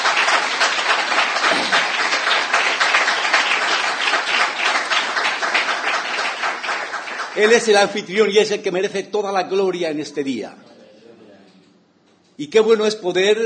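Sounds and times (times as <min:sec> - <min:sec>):
audience applause: 0:00.0 - 0:08.0
speech: 0:07.4 - 0:10.7, 0:12.4 - 0:13.4.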